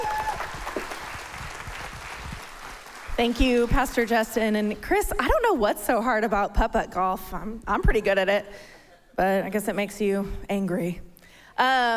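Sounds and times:
round of applause: 0.0 - 3.7
speech: 3.2 - 11.9.

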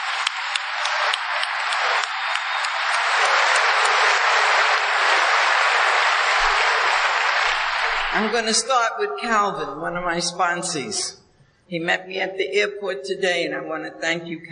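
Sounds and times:
round of applause: 0.0 - 8.8
speech: 8.2 - 14.5.

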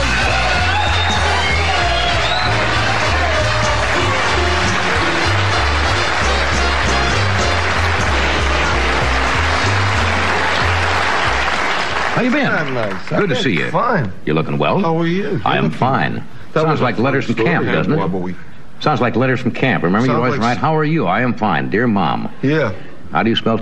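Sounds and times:
studio audience cheering and applauding to welcome comedian Norm Crosby: 0.0 - 13.7
speech: 12.2 - 23.6.

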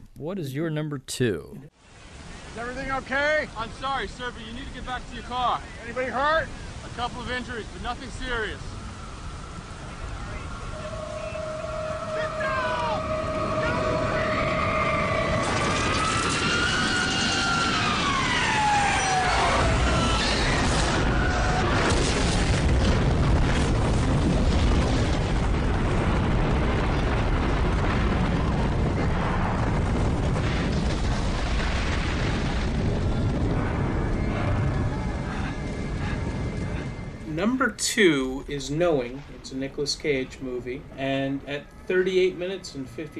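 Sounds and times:
speech: 0.2 - 2.0, 2.6 - 8.8, 37.8 - 43.1
plane crash from ground perspective in a movie scene: 6.4 - 40.6.

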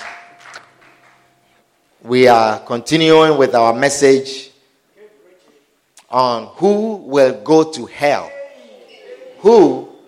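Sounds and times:
audience clapping hands: 0.0 - 1.6
speech: 2.0 - 4.5, 6.1 - 8.4, 9.4 - 9.9.

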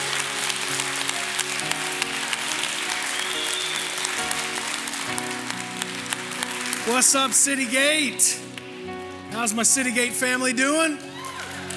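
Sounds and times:
church congregation applauding at a Sunday service: 0.0 - 11.7
speech: 6.9 - 8.6, 9.4 - 11.1.

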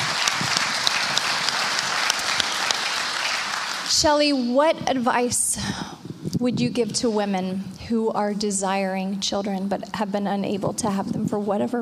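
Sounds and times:
audience applause: 0.0 - 4.2
speech: 4.0 - 11.7.

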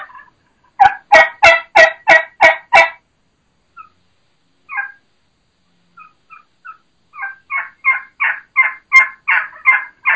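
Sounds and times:
turkey plain yelps: 0.0 - 3.0, 3.8 - 4.0, 4.7 - 5.0, 6.0 - 10.1.

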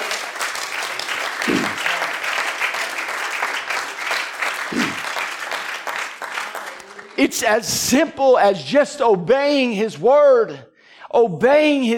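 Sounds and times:
audience clapping: 0.0 - 7.4
speech: 7.2 - 11.9.

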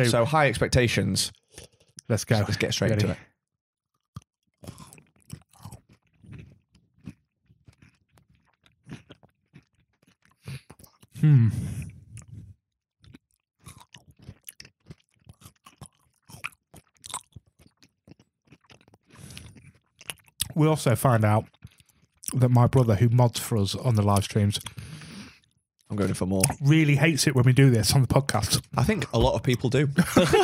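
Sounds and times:
speech: 0.0 - 3.3, 11.2 - 11.9, 20.6 - 21.5, 22.3 - 24.8, 25.9 - 30.4
person crunching a crispy snack: 3.9 - 11.2, 13.0 - 20.6, 21.4 - 22.4
laughter: 28.8 - 30.4.

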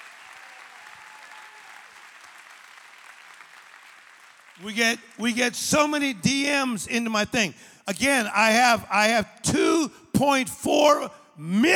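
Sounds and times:
audience clapping: 0.0 - 6.0
speech: 4.6 - 11.7.

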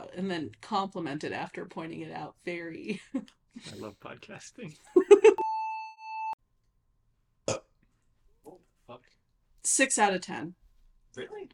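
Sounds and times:
speech: 0.2 - 5.4, 9.6 - 10.6, 11.2 - 11.5
crisp burp: 7.5 - 7.8.

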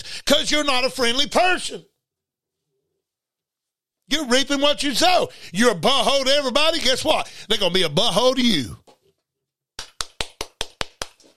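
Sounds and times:
speech: 0.4 - 1.9, 4.1 - 8.9
one person clapping for himself: 9.8 - 11.3.

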